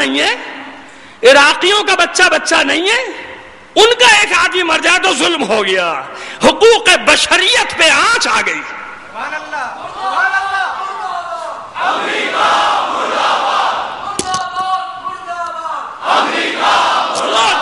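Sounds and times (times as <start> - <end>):
speech: 0.0 - 0.5, 1.2 - 3.2, 3.8 - 10.3
crowd in Pakistan chanting a slogan in unison: 11.8 - 14.1, 16.0 - 17.5.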